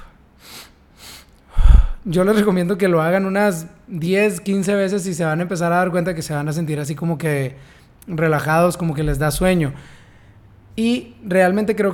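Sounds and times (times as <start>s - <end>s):
breath exhaling: 0.0s - 2.1s, 9.1s - 10.4s
two quick breathy inhales: 0.0s - 2.1s, 7.6s - 8.0s, 9.8s - 10.6s
speech: 2.0s - 10.0s, 10.8s - 11.9s.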